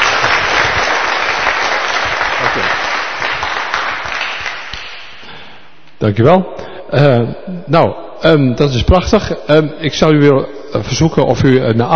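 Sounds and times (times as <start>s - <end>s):
applause: 0.0s - 5.4s
speech: 6.0s - 11.9s.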